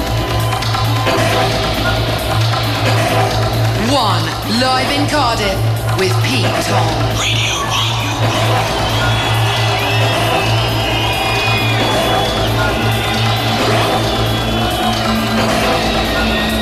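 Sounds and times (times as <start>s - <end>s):
shrill whistles: 0.0s - 2.0s, 7.4s - 16.6s
large crowd roaring and cheering at ice rink event: 0.0s - 16.6s
speech: 4.1s - 7.5s, 8.2s - 8.9s.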